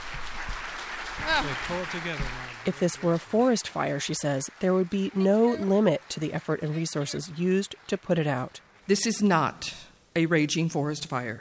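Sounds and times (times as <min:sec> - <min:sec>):
crowd applauding in a standing ovation: 0:00.0 - 0:08.6
speech: 0:01.3 - 0:11.3.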